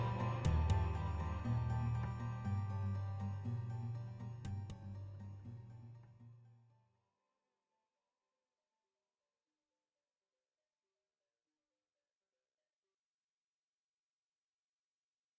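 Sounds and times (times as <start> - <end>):
tense music: 0.0 - 5.0.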